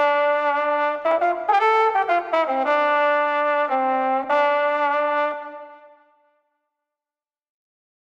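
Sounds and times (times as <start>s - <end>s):
flugelhorn playing a lament in the street: 0.0s - 6.1s.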